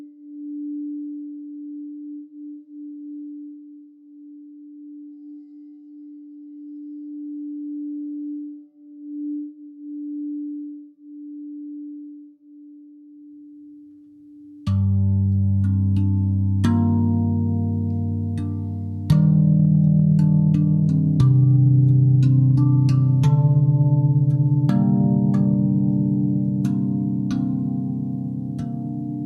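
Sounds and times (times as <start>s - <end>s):
sound bath pure steady tone: 0.0s - 29.2s
sound bath loud rich chord of low ringing tones: 14.7s - 29.2s.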